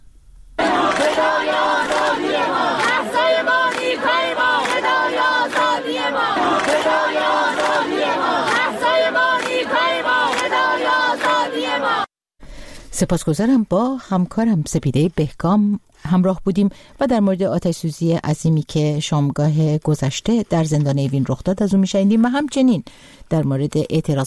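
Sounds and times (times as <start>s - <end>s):
university students chanting in protest: 0.6s - 12.1s
speech: 13.0s - 24.2s.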